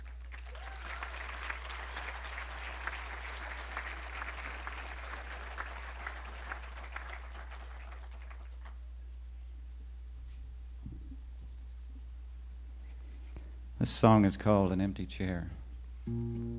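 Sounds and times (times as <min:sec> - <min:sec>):
audience applause: 0:00.0 - 0:08.8
speech: 0:13.8 - 0:16.4.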